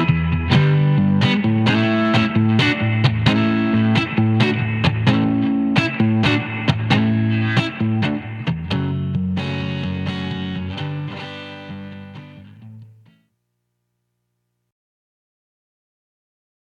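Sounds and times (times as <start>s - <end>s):
rock guitar with neck pickup, light grind and reverb: 0.0s - 13.2s.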